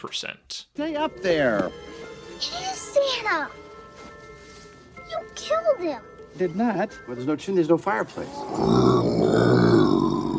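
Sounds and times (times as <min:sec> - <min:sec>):
speech: 0:00.0 - 0:03.7, 0:05.4 - 0:09.7
person growling: 0:08.3 - 0:10.3.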